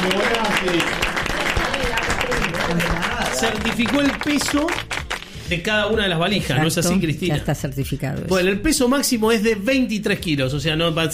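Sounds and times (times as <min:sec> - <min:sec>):
studio audience applause on a game show: 0:00.0 - 0:05.8
speech: 0:00.6 - 0:01.1, 0:03.4 - 0:04.9, 0:05.5 - 0:11.1.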